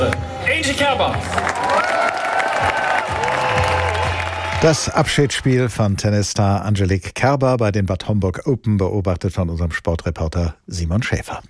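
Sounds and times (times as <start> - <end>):
speech: 0.0 - 1.6, 4.6 - 11.4
loud sustained applause from a large audience: 0.0 - 5.3
cheering voices: 0.0 - 5.7.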